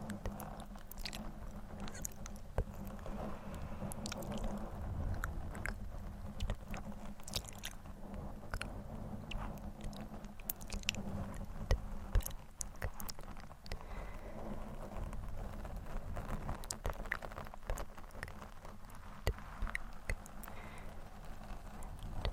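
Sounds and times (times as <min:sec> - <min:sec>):
wet mouth sounds: 0:00.0 - 0:01.2, 0:01.8 - 0:07.8, 0:09.3 - 0:14.0, 0:16.6 - 0:20.8
low rumble and hum: 0:00.0 - 0:22.3
microphone scratching: 0:00.0 - 0:22.3.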